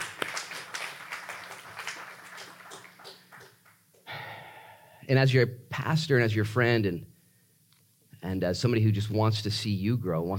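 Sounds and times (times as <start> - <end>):
audience applause: 0.0 - 3.8
speech: 5.1 - 7.1, 8.3 - 10.3.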